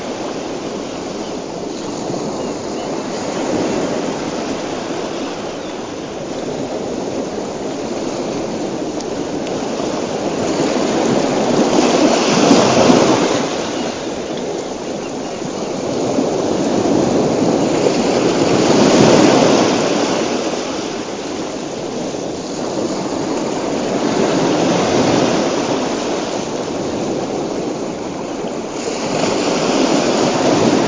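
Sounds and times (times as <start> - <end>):
relaxing ocean sounds: 0.0 - 30.8.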